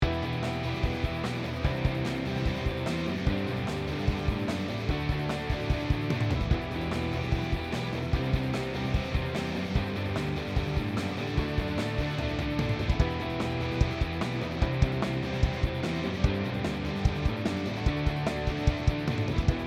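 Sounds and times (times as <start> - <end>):
drum mix with expander gate: 0.0 - 19.6.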